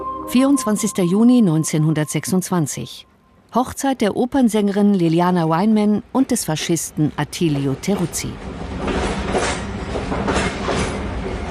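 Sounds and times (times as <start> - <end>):
speech: 0.3 - 8.9
train rattling along the tracks: 7.5 - 11.4.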